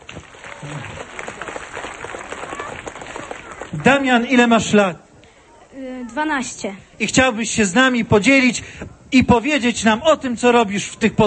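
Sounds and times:
audience applause: 0:00.0 - 0:04.4
speech: 0:00.6 - 0:01.1, 0:03.7 - 0:05.0, 0:06.1 - 0:11.2.

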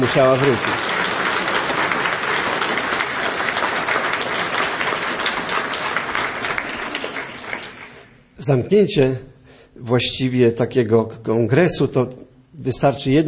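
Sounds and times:
speech: 0:00.0 - 0:00.9, 0:08.4 - 0:13.2
audience applause: 0:00.0 - 0:08.2.

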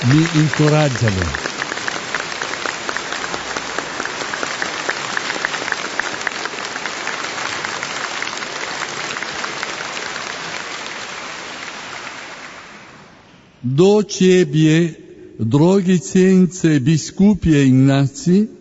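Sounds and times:
large crowd applauding in a cathedral: 0:00.0 - 0:13.3
speech: 0:00.1 - 0:01.5, 0:13.7 - 0:18.5.

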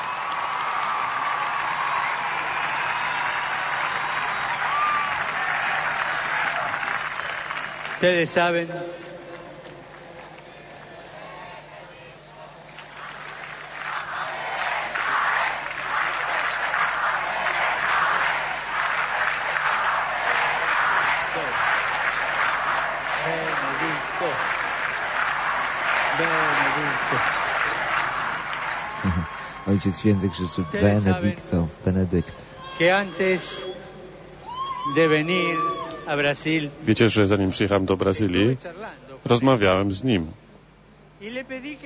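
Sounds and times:
crowd applauding: 0:00.0 - 0:08.4, 0:12.4 - 0:32.0
speech: 0:08.0 - 0:09.1, 0:29.8 - 0:33.7, 0:34.8 - 0:40.4, 0:41.4 - 0:41.8.

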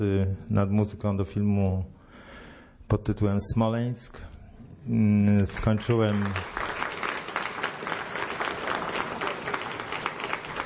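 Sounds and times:
speech: 0:00.0 - 0:02.0, 0:02.9 - 0:06.8
audience applause during a live music performance: 0:05.8 - 0:10.6.

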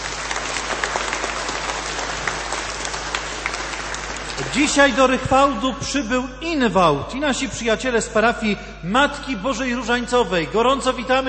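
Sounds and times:
steady applause from a crowd: 0:00.0 - 0:05.2
speech: 0:04.5 - 0:11.2.

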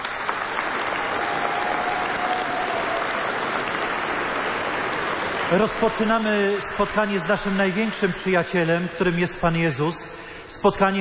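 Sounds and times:
audience applause: 0:00.0 - 0:08.2
speech: 0:05.5 - 0:10.9.

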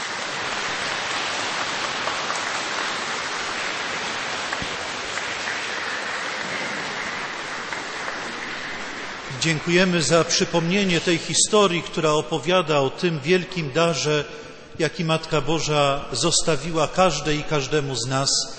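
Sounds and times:
applause: 0:00.0 - 0:10.1
speech: 0:09.4 - 0:18.5.

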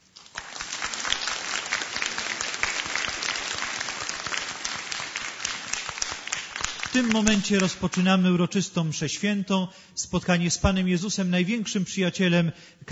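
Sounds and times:
crowd applauding: 0:00.0 - 0:08.0
speech: 0:07.0 - 0:12.9.

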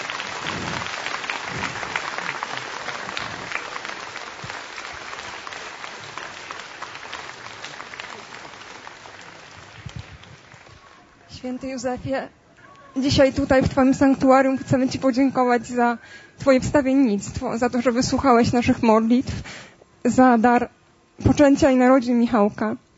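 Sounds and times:
crowd clapping: 0:00.0 - 0:11.2
speech: 0:11.4 - 0:12.4, 0:13.0 - 0:20.7, 0:21.4 - 0:22.8.

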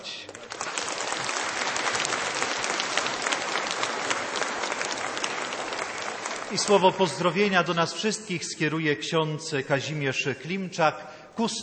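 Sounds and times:
audience applause: 0:00.0 - 0:07.4
speech: 0:06.5 - 0:11.6.

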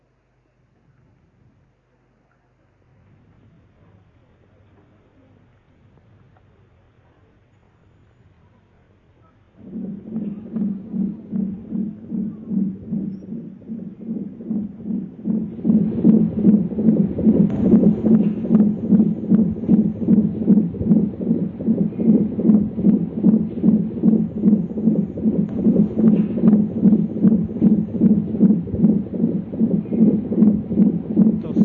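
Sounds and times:
heartbeat of an unborn baby: 0:09.5 - 0:31.6.

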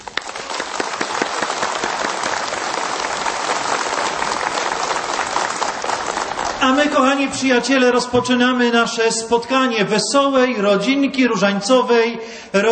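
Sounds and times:
audience applause: 0:00.0 - 0:07.1
speech: 0:06.6 - 0:12.7.

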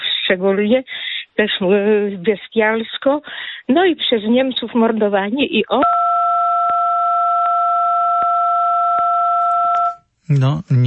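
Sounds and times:
speech: 0:00.3 - 0:06.1, 0:10.3 - 0:10.8
telephone keypad tone: 0:05.8 - 0:10.0.

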